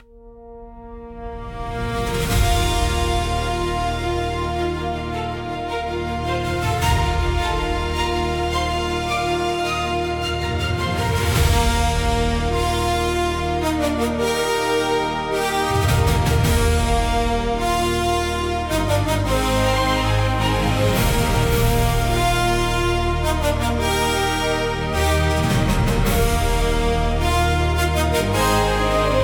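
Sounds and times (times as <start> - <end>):
fanfare: 0.6 - 29.2.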